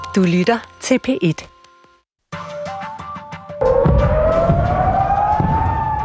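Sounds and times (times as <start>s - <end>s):
speech: 0.2s - 1.5s
air raid sirens in Israel: 3.6s - 6.0s.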